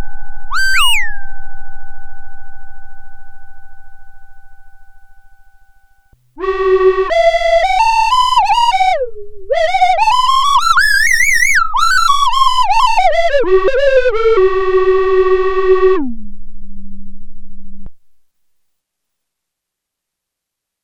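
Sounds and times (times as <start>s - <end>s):
synthesizer whistle with glissando factory patch: 0.0s - 1.5s, 6.4s - 16.2s.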